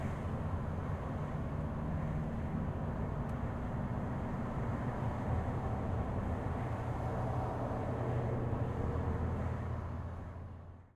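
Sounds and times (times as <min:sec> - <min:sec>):
car interior driving fast on busy freeway with windows open: 0:00.0 - 0:10.8.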